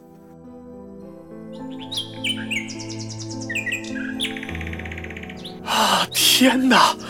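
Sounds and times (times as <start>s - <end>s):
nightingale singing: 1.3s - 7.0s
speech: 6.0s - 7.0s.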